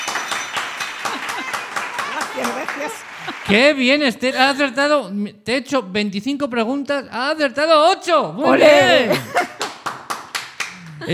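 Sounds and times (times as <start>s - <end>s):
children clapping: 0.0s - 3.8s, 9.4s - 11.1s
laughter: 0.8s - 4.8s, 8.5s - 9.7s, 10.8s - 11.1s
children shouting and cheering: 1.0s - 3.4s
speech: 2.4s - 9.5s.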